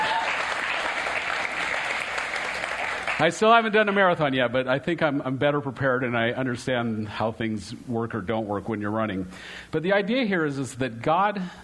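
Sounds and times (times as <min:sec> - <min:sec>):
round of applause: 0:00.0 - 0:04.0
speech: 0:03.2 - 0:11.6.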